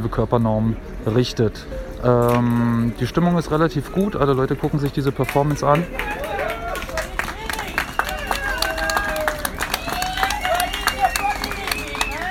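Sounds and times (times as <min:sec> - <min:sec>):
speech: 0:00.0 - 0:06.2
crowd clapping: 0:04.6 - 0:12.2.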